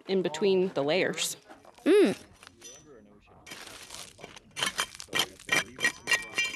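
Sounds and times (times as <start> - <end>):
speech: 0.1 - 2.3
hammers breaking rocks in a quarry: 4.6 - 6.5.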